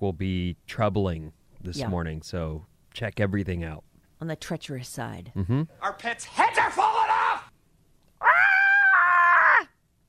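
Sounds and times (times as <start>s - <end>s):
speech: 0.0s - 7.1s
goat screaming: 8.2s - 9.7s.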